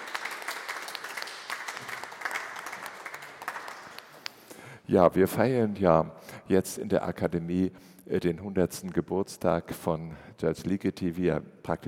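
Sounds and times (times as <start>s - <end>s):
audience applause: 0.0s - 4.2s
speech: 4.9s - 11.8s.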